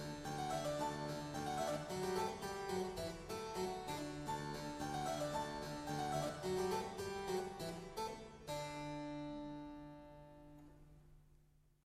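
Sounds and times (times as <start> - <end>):
harpsichord: 0.0 - 9.0.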